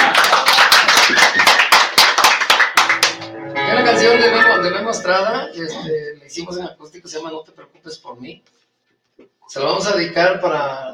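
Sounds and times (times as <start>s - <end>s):
audience applause: 0.0s - 3.8s
speech: 5.0s - 8.6s, 9.2s - 10.9s.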